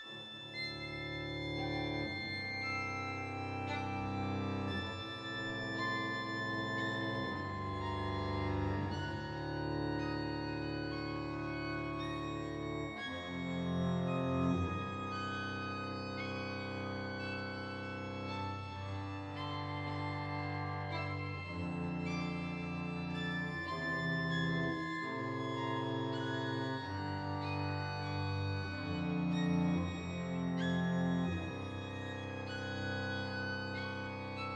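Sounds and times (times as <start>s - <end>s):
string quartet: 0.1s - 34.5s.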